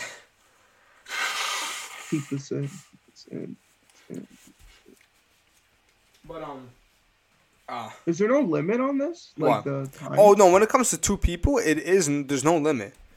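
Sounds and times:
person blowing nose: 1.0s - 3.0s
speech: 2.1s - 5.0s, 6.2s - 6.8s, 7.7s - 13.0s.

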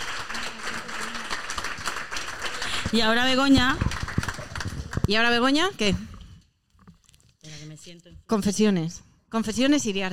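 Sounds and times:
audience applause: 0.0s - 5.1s
speech: 2.9s - 3.9s, 5.1s - 6.1s, 8.2s - 10.1s.

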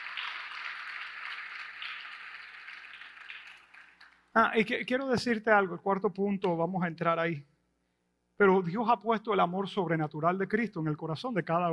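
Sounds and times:
audience applause: 0.0s - 4.2s
speech: 4.4s - 7.5s, 8.4s - 11.7s.

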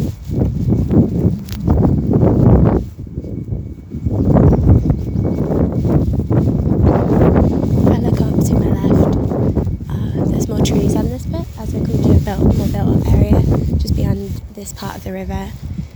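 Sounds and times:
wind picking up outdoors: 0.0s - 15.9s.

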